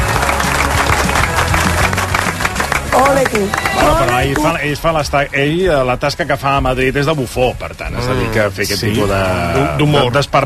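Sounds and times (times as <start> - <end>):
applause: 0.0 - 4.6
speech: 3.3 - 10.4.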